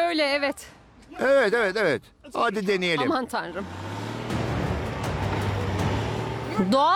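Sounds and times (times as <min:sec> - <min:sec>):
speech: 0:00.1 - 0:03.9, 0:06.6 - 0:06.9
car pulling away in first gear: 0:02.8 - 0:06.9.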